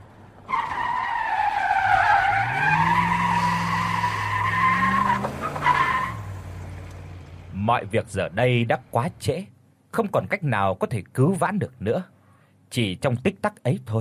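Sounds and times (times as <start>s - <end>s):
tires skidding: 0.4s - 7.5s
truck brakes screeching: 0.5s - 6.9s
speech: 7.7s - 12.1s, 12.7s - 13.9s.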